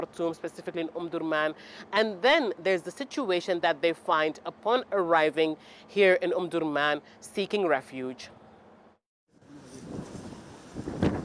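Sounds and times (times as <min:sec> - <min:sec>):
speech: 0:00.0 - 0:08.4
gusty wind of a dust storm buffeting the microphone: 0:09.5 - 0:11.2.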